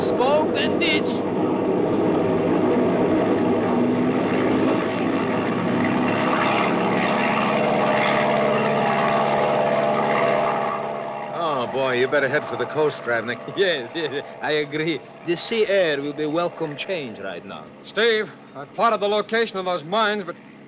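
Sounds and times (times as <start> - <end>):
propeller airplane engine droning: 0.0 - 20.6
speech: 0.2 - 1.3, 12.0 - 20.5.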